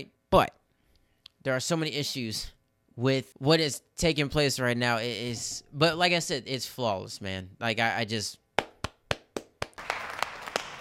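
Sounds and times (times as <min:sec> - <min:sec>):
speech: 0:00.0 - 0:00.6, 0:01.4 - 0:08.4
hand clapping: 0:08.6 - 0:10.7.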